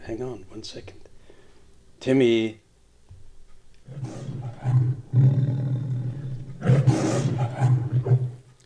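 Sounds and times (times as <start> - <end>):
speech: 0.0 - 1.1, 2.0 - 2.6
big cat roaring: 3.8 - 8.4.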